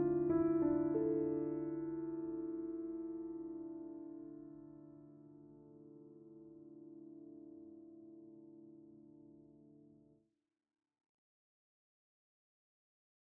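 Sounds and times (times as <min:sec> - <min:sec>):
piano with vocal synth an octave up: 0:00.0 - 0:09.1.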